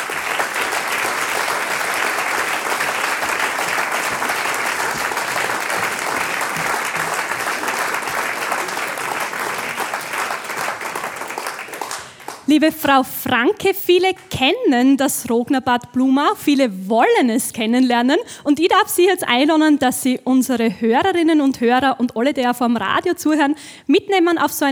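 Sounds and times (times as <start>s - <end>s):
audience applause: 0.0s - 12.5s
speech: 12.6s - 24.6s.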